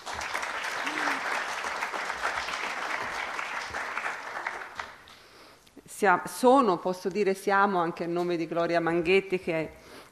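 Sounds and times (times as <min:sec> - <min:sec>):
audience applause: 0:00.0 - 0:05.1
speech: 0:06.0 - 0:09.8.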